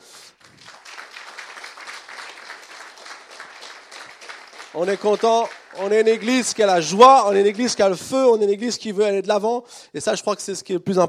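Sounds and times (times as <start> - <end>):
audience applauding newcomers: 0.4 - 8.0
speech: 4.7 - 11.0.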